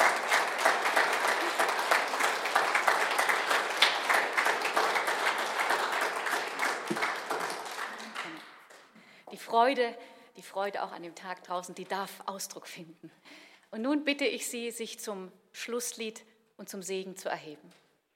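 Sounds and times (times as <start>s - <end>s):
audience applause: 0.0s - 8.9s
speech: 9.6s - 17.8s.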